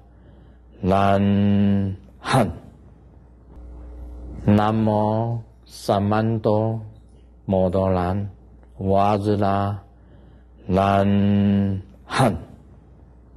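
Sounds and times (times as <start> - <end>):
short mantra chanting: 0.7 - 2.8, 4.3 - 10.0, 10.6 - 12.8.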